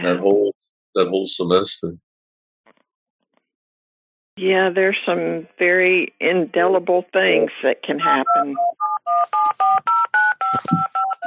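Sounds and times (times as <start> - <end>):
speech: 0.0 - 2.0, 4.4 - 11.2
telephone keypad dialing beeps: 8.2 - 11.2.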